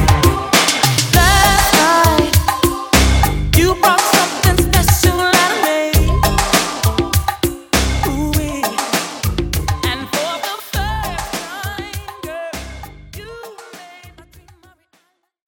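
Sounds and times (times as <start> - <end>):
80s drum machine beat at 100 BPM: 0.0 - 14.8.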